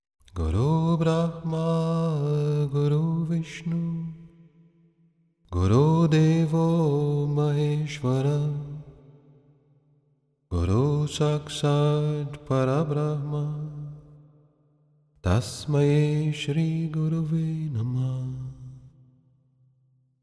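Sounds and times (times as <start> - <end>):
bhajan devotional singing: 0.3 - 4.3, 5.5 - 9.0, 10.5 - 14.2, 15.2 - 18.9.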